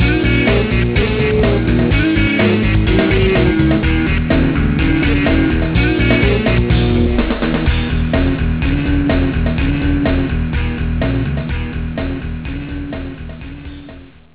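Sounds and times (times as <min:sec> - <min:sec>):
rock music: 0:00.0 - 0:14.3.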